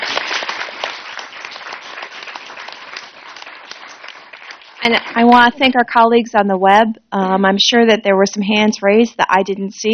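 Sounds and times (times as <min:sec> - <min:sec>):
audience applause: 0:00.0 - 0:05.2
speech: 0:04.8 - 0:09.9.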